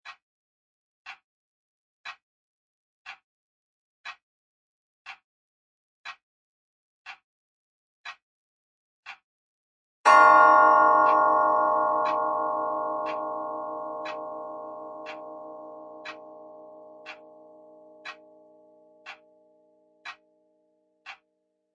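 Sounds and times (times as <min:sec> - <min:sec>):
grandfather clock ticking: 0:10.1 - 0:19.3.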